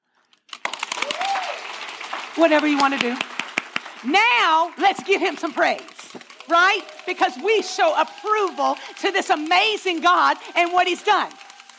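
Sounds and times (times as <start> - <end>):
several people clapping: 0.4 - 11.7
rising vocal whoop: 1.0 - 1.6
speech: 2.4 - 3.3, 4.0 - 5.9, 6.5 - 11.4.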